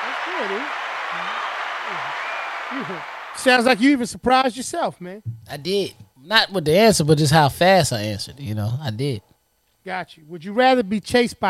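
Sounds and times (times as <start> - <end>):
clapping: 0.0 - 3.4
speech: 0.4 - 9.2, 9.8 - 11.4.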